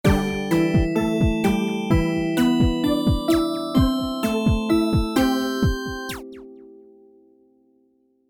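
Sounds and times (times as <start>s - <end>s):
bumper beat: 0.0s - 6.2s.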